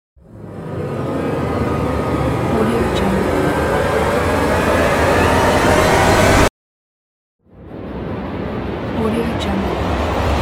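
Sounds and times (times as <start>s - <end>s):
cinematic rising tension build: 0.2s - 6.5s, 7.4s - 10.4s.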